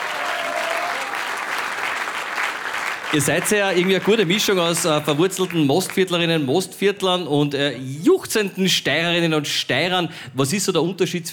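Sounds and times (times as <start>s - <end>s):
audience applause: 0.0s - 6.1s
speech: 3.1s - 11.3s.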